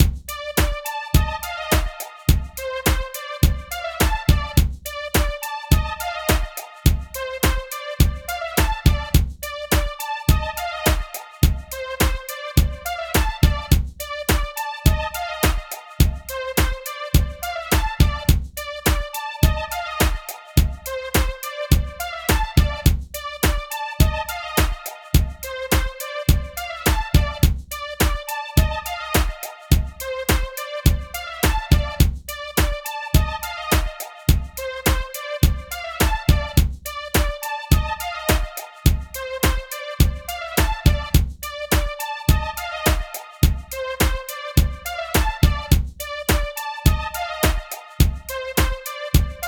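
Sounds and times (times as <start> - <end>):
alternative hip hop beat in C minor: 0.0 - 49.4.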